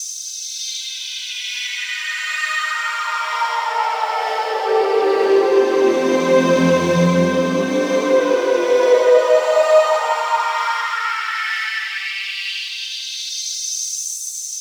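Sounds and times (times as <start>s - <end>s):
synthesizer pad: 1.8s - 11.7s.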